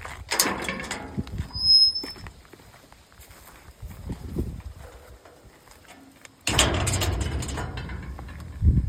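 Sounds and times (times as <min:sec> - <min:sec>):
new entrance gate: 0:00.3 - 0:02.3, 0:05.8 - 0:08.8.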